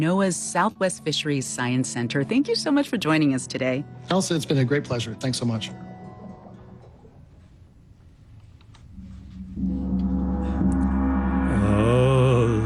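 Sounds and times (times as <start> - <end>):
speech: 0.0 - 5.9
gong being struck: 8.9 - 12.6.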